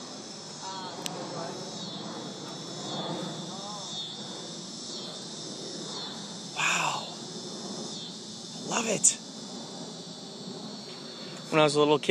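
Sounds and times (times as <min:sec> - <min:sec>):
cicadas buzzing: 0:00.0 - 0:12.0
speech: 0:08.8 - 0:09.2, 0:11.5 - 0:12.0.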